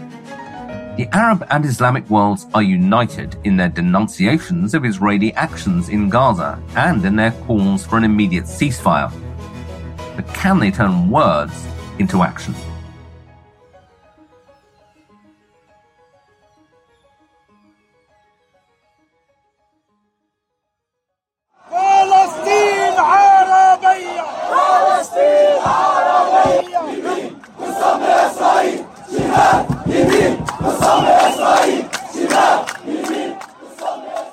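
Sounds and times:
speech: 1.0 - 9.3, 10.2 - 12.7
huge crowd of demonstrators chanting in unison: 21.6 - 34.3.

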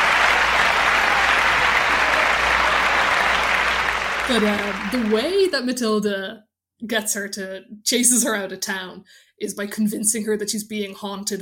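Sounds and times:
thunderous applause sound effect: 0.0 - 5.5
speech: 4.3 - 11.4.

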